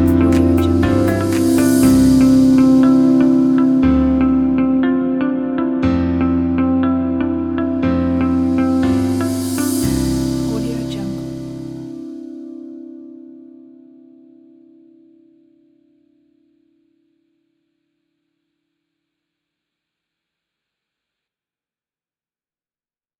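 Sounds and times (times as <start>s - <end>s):
corporate motivational music: 0.0s - 12.9s.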